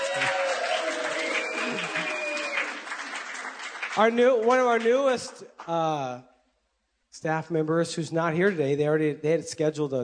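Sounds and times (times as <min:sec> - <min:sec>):
audience applause: 0:00.0 - 0:05.3
speech: 0:04.0 - 0:06.3, 0:07.1 - 0:10.0.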